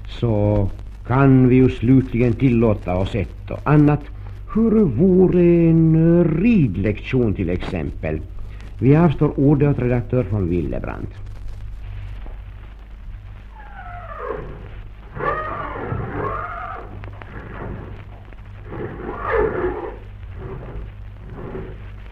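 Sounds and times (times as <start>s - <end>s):
steady low hum: 0.0s - 22.1s
speech: 0.1s - 11.3s
horses whinnying in a stable: 13.6s - 18.0s, 18.7s - 21.8s.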